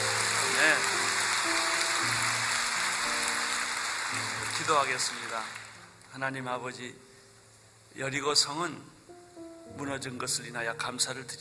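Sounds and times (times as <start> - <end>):
audience applause: 0.0 - 5.9
speech: 4.7 - 7.1, 7.9 - 9.0, 9.7 - 11.4.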